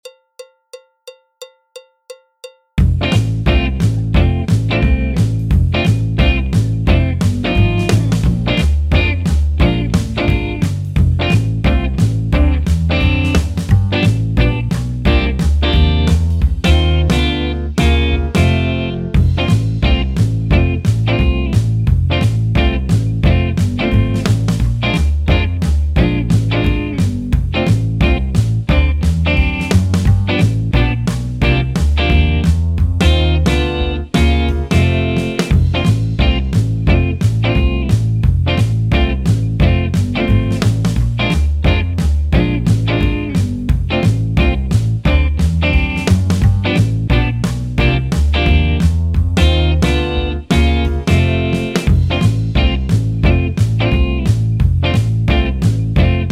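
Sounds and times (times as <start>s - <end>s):
jazz backing track: 2.8s - 56.3s.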